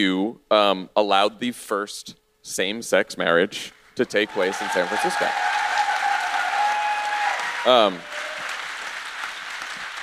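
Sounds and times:
speech: 0.0s - 5.6s, 7.6s - 8.1s
audience applause: 4.0s - 10.0s.

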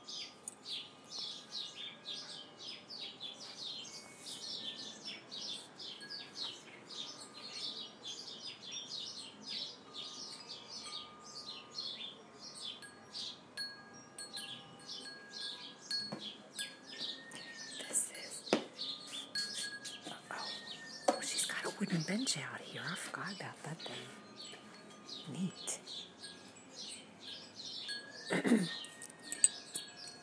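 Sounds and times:
birds chirping outdoors: 0.0s - 30.2s
speech: 22.1s - 24.3s.

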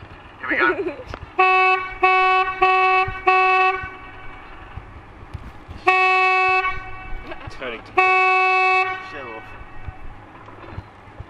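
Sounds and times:
speech: 0.5s - 2.1s
boat horn giving sound signals on a ship canal: 1.4s - 4.8s, 5.8s - 10.2s.

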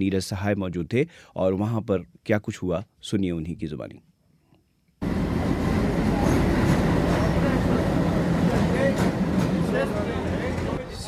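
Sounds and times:
speech: 0.0s - 4.1s
special train arriving at Patna railway station: 5.0s - 11.0s.

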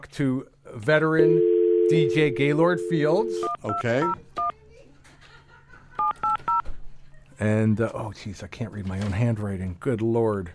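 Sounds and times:
speech: 0.0s - 4.3s, 7.4s - 10.5s
touch-tone beeps of a cell phone number being dialed: 1.2s - 4.5s, 6.0s - 6.6s
laughter: 4.7s - 7.4s.

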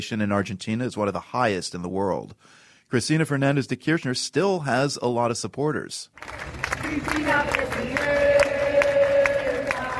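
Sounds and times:
speech: 0.0s - 8.2s
crowd chanting in front of the National Congress in Buenos Aires: 6.7s - 9.9s.

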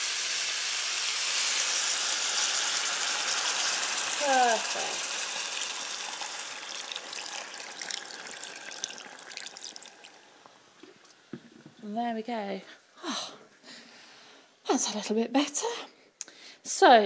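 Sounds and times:
water added to stir-frying pan: 0.0s - 11.3s
speech: 4.2s - 5.1s, 11.8s - 13.4s, 14.8s - 16.0s, 16.7s - 17.0s.

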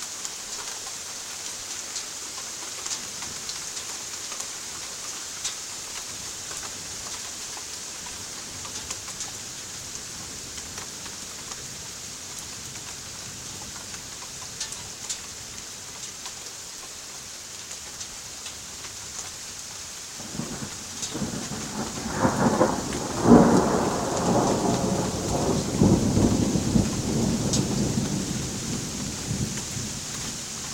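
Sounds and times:
rain: 0.0s - 30.7s
thunder: 20.2s - 30.0s.

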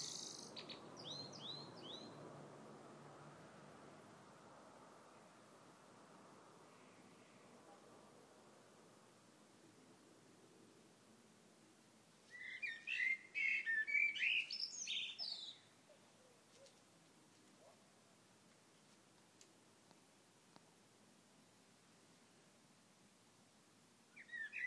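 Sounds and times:
birdsong: 0.0s - 2.2s, 12.3s - 16.8s, 24.2s - 24.6s.

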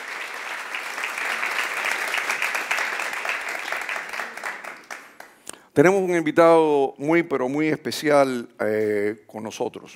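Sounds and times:
audience applause: 0.0s - 5.4s
speech: 5.8s - 9.9s.

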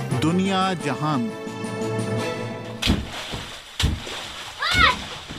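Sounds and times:
speech: 0.2s - 1.4s
water splashing: 2.7s - 5.3s.

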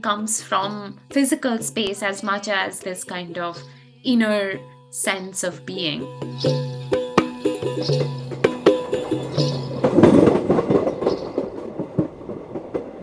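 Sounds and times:
speech: 0.0s - 6.8s, 7.7s - 9.6s
rattling: 6.2s - 13.0s
train wheels clickety-clack over rail joints: 8.4s - 13.0s.

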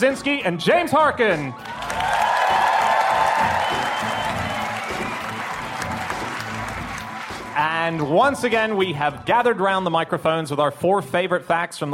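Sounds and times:
speech: 0.0s - 2.2s, 7.8s - 11.9s
live audience at a stage show in Cambridge applauding as the hosts walk on: 1.6s - 8.1s.

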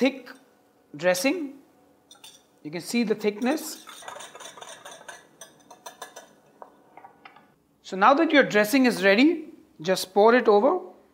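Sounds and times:
speech: 0.0s - 1.6s, 2.2s - 4.2s, 7.9s - 10.9s
whisk clinking against a bowl whisking salad dressing: 2.1s - 2.5s, 3.3s - 6.8s.

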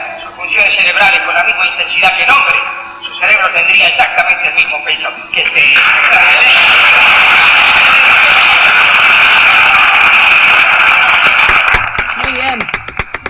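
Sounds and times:
speech: 0.6s - 7.2s
crowd audience applause: 5.8s - 13.2s.

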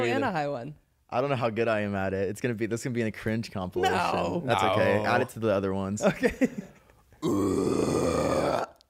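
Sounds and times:
speech: 0.0s - 7.9s
medium-pitched scream: 7.2s - 8.8s.

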